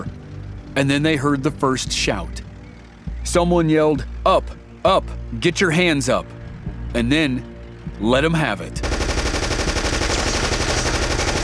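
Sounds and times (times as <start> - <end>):
speech: 0.8 - 2.5, 3.2 - 8.9
machine gun fire: 8.8 - 11.4.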